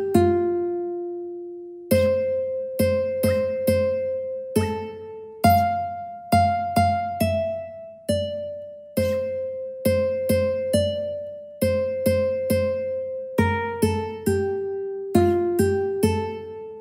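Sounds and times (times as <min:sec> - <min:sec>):
folk tune played on ukulele: 0:00.0 - 0:16.7.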